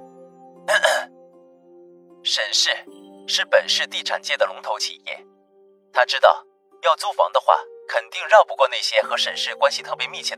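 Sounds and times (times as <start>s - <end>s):
throat clearing: 0.7s - 1.1s
speech: 2.3s - 5.3s, 5.9s - 10.3s.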